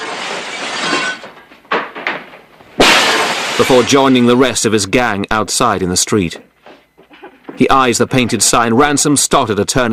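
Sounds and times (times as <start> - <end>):
chair smashing through glass office window: 0.0 - 4.4
speech: 3.6 - 6.5, 7.6 - 9.9.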